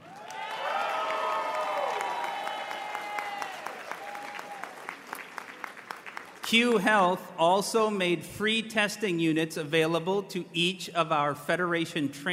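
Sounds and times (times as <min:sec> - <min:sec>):
audience cheering: 0:00.0 - 0:05.7
audience applause: 0:00.0 - 0:06.5
speech: 0:06.5 - 0:12.3.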